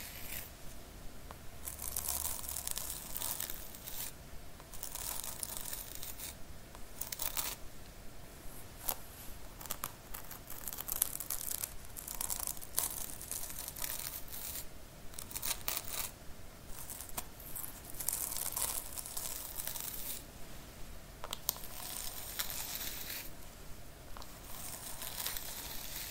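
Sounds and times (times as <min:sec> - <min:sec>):
scalp scratching and brushing: 0:00.0 - 0:00.6, 0:01.6 - 0:06.4, 0:07.0 - 0:07.6, 0:08.8 - 0:20.3, 0:21.3 - 0:23.3, 0:24.2 - 0:26.0
faint low hum: 0:00.0 - 0:26.0.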